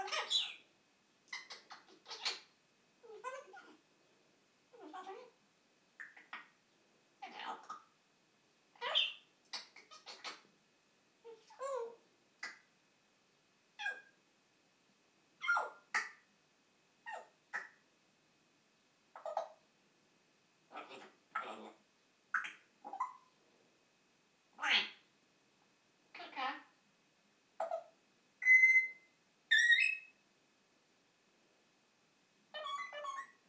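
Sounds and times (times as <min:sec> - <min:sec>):
African grey parrot imitating birds: 0:00.0 - 0:00.6, 0:01.3 - 0:03.8, 0:04.7 - 0:05.4, 0:06.0 - 0:06.6, 0:07.2 - 0:07.9, 0:08.8 - 0:10.5, 0:13.8 - 0:14.2, 0:15.4 - 0:16.2, 0:17.0 - 0:17.8, 0:19.1 - 0:19.6, 0:20.7 - 0:23.3, 0:24.6 - 0:25.0, 0:27.6 - 0:30.1, 0:32.5 - 0:33.4
African grey parrot talking: 0:00.0 - 0:00.6, 0:01.3 - 0:03.8, 0:04.7 - 0:05.4, 0:06.0 - 0:06.6, 0:07.2 - 0:07.9, 0:08.8 - 0:10.4, 0:11.2 - 0:12.6, 0:13.8 - 0:14.2, 0:15.4 - 0:16.2, 0:17.0 - 0:17.8, 0:19.1 - 0:19.6, 0:20.7 - 0:23.3, 0:24.6 - 0:25.0, 0:26.1 - 0:26.7, 0:27.6 - 0:30.1, 0:32.5 - 0:33.4.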